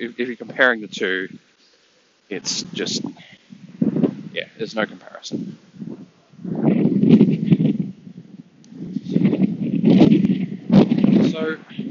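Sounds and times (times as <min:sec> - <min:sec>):
speech: 0:00.0 - 0:01.5, 0:02.3 - 0:03.4, 0:04.4 - 0:07.5
wind buffeting a microphone outdoors: 0:02.4 - 0:11.9.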